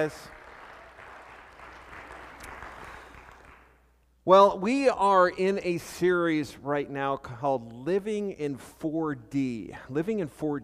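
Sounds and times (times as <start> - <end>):
speech: 0.0 - 0.4, 4.2 - 10.6
audience round of applause: 0.0 - 3.8.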